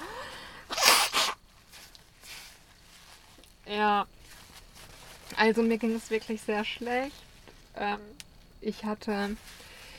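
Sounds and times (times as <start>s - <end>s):
person blowing nose into a tissue: 0.7s - 1.4s
speech: 3.7s - 4.2s, 5.4s - 7.2s, 7.8s - 9.6s.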